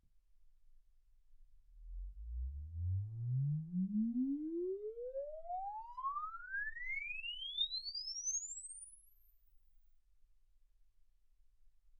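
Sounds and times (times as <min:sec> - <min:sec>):
exponential sine sweep from 10 Hz to 24 kHz: 0:01.9 - 0:09.4.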